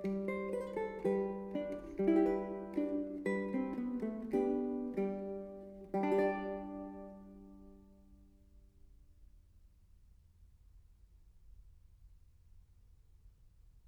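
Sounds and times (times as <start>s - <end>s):
four-course guitar piece: 0.0s - 8.6s.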